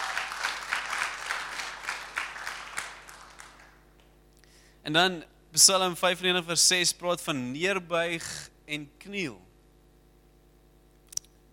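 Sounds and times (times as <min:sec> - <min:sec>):
group clapping hands: 0:00.0 - 0:04.2
speech: 0:04.8 - 0:09.5.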